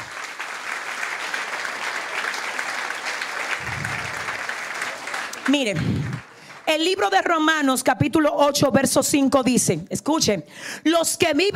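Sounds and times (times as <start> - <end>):
audience applause: 0.0 - 7.0
speech: 5.5 - 11.5.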